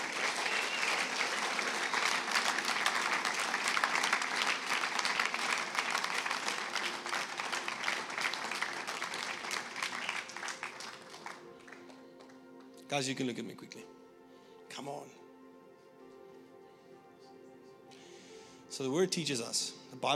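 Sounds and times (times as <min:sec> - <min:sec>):
audience applause: 0:00.0 - 0:12.4
speech: 0:12.9 - 0:14.0, 0:14.8 - 0:15.2, 0:18.8 - 0:20.1.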